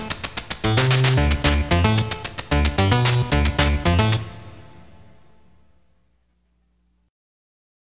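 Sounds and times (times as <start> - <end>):
background music: 0.0 - 6.2.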